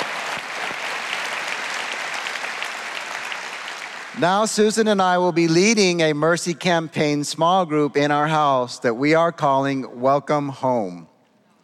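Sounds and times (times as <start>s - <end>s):
audience clapping: 0.0s - 5.2s
speech: 4.2s - 11.1s.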